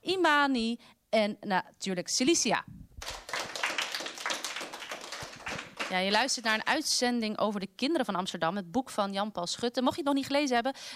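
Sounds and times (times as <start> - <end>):
speech: 0.1 - 3.2, 5.9 - 10.9
group applause: 3.0 - 6.8.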